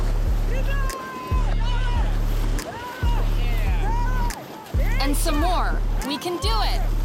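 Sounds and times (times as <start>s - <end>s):
rhythmic paddle strokes: 0.0s - 7.0s
rushing water of a small rapid: 0.0s - 7.0s
loud excited voices: 0.5s - 6.9s
speech: 5.2s - 7.0s.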